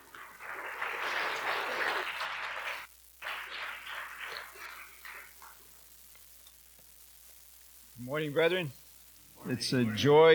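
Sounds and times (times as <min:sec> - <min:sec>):
church congregation at Helix Bible Church applauding to welcome a visiting pastor: 0:00.0 - 0:05.8
speech: 0:08.1 - 0:08.8, 0:09.4 - 0:10.3.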